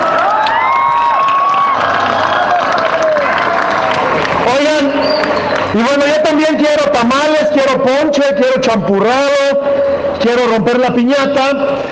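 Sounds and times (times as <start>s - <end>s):
applause: 0.0s - 6.1s
crowd cheering: 0.0s - 6.1s
speech: 5.7s - 11.9s.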